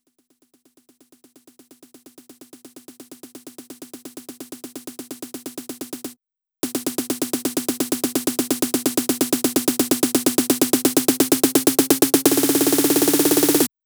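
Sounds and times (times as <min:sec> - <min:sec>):
drum loop snare drum roll: 0:06.7 - 0:13.7.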